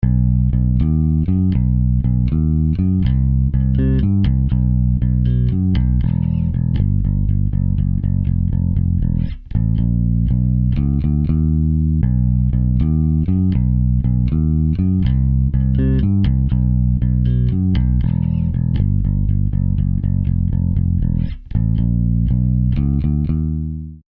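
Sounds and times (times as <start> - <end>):
wet bass: 0.0 - 24.0.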